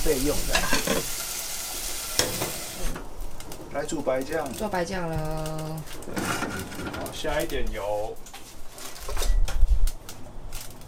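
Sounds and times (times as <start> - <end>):
food frying in a pan: 0.0 - 4.8
speech: 0.1 - 1.3, 3.8 - 8.3.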